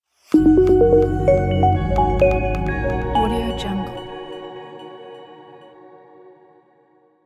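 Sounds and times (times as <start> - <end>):
elegant logo music: 0.4 - 5.6.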